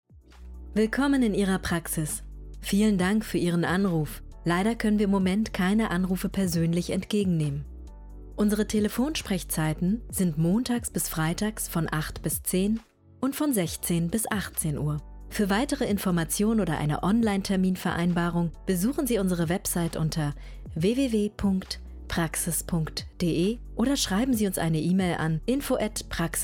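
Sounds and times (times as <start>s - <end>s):
music: 0.0s - 26.4s.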